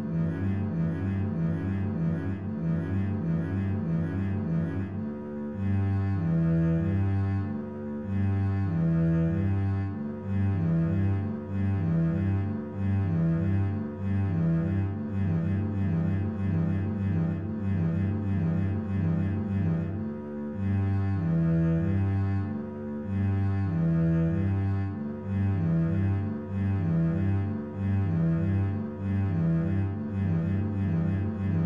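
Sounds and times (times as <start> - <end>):
bass etude: 0.0 - 31.6.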